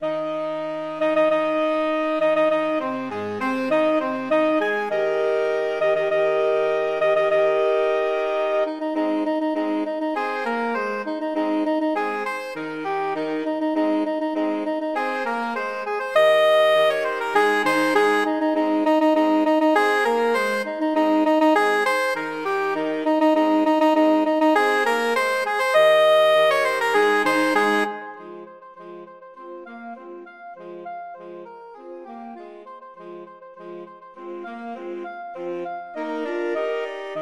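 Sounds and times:
saxophone quartet: 0.0 - 37.2.

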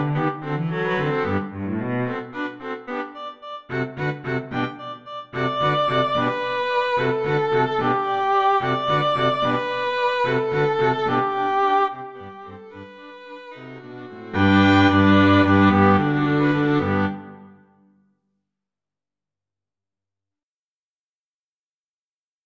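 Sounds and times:
Slavonic string quartet playing: 0.0 - 3.2, 3.9 - 17.5.

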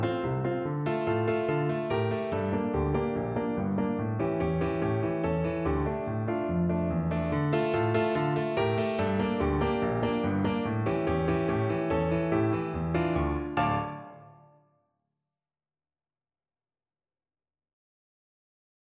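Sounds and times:
piano piece: 0.0 - 14.7.

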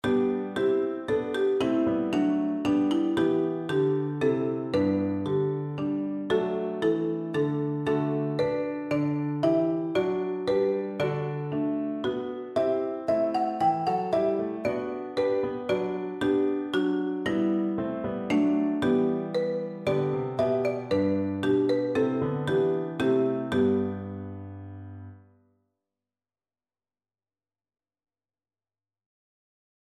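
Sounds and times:
marimba: 0.0 - 24.5.

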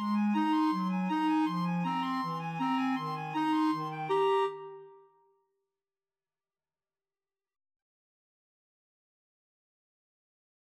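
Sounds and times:
clarinet trio: 0.0 - 5.1.

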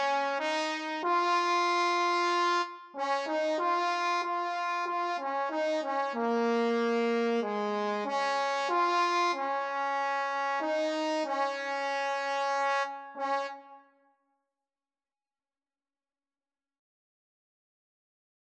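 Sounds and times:
trombone duet: 0.0 - 13.7.

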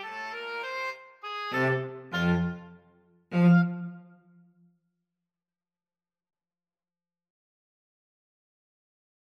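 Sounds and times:
oboe and cello duet: 0.0 - 4.2.

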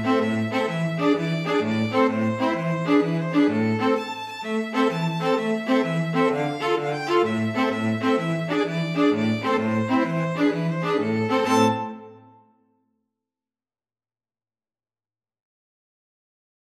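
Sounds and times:
string quartet playing a tarantella: 0.0 - 12.4.

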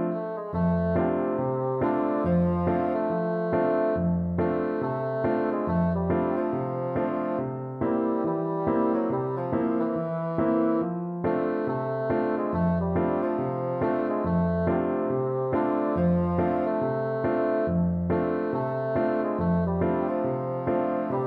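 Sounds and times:
bassoon playing: 0.1 - 21.2.

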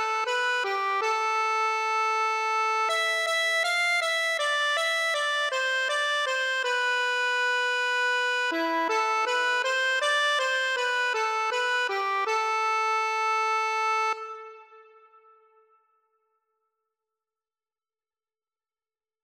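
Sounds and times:
accordion: 0.0 - 15.2.

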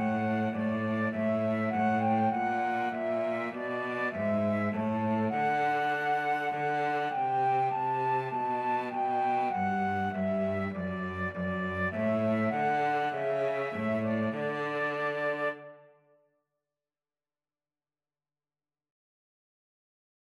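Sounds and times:
flute and cello duet: 0.0 - 16.0.

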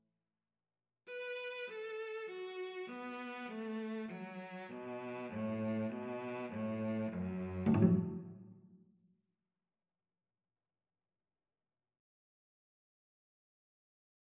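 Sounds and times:
violin and cello duet: 1.1 - 8.3.

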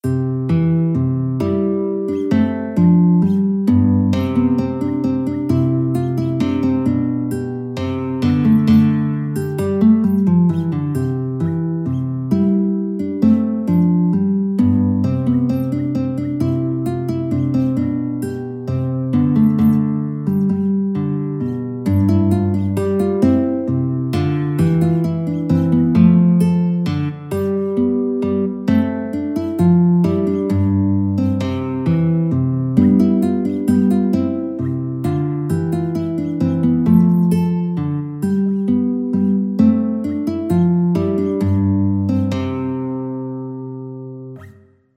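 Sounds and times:
minuet on guitar: 0.0 - 44.9.

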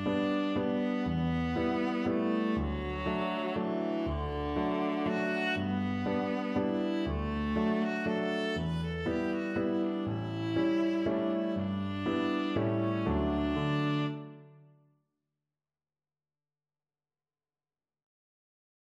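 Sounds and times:
viola: 0.0 - 14.6.

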